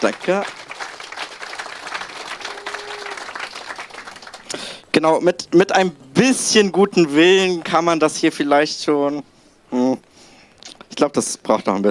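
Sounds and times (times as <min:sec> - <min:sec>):
speech: 0:00.0 - 0:00.6, 0:04.5 - 0:09.8, 0:11.0 - 0:11.8
audience applause: 0:00.0 - 0:04.9.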